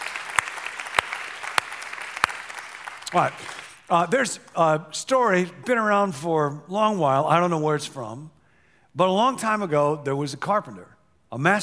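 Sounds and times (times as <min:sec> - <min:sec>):
crowd cheering and applause: 0:00.0 - 0:04.1
speech: 0:03.1 - 0:08.4, 0:09.0 - 0:11.6.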